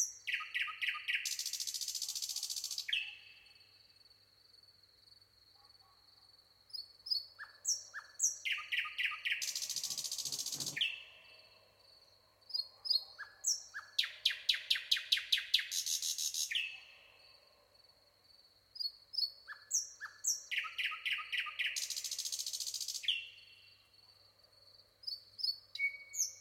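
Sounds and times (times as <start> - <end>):
Common nightingale song: 0.0 - 3.6, 6.7 - 11.7, 12.5 - 17.1, 18.8 - 23.8, 25.0 - 26.4.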